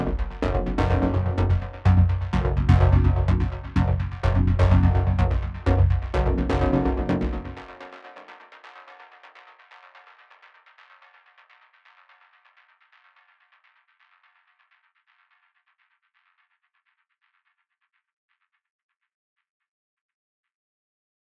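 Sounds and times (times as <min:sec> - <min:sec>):
synth: 0:00.0 - 0:07.8.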